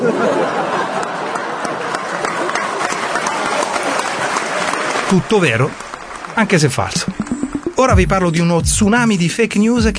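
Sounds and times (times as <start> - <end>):
laughter: 0.0 - 2.6
audience applause: 0.6 - 7.3
speech: 5.1 - 5.8, 6.4 - 7.2, 7.8 - 9.9.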